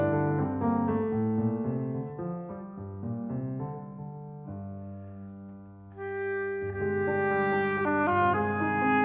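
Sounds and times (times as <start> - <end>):
piano: 0.0 - 9.0
clarinet: 6.0 - 9.0
oboe: 6.0 - 9.0.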